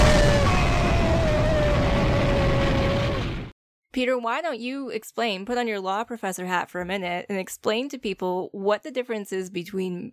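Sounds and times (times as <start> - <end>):
explosion sound effect suggesting a head exploding: 0.0 - 3.6
speech: 4.0 - 10.1.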